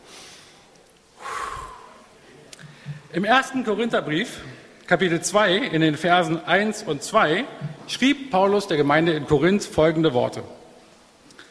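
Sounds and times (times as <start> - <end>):
deep breathing in and out during a sermon: 0.0 - 3.1
speech: 3.1 - 10.6.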